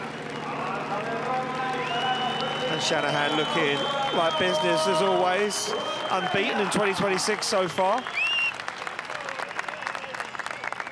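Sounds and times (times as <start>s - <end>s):
crowd applauding: 0.0s - 10.8s
whistles: 1.8s - 6.8s, 7.8s - 8.7s, 9.3s - 10.8s
speech: 2.8s - 8.2s.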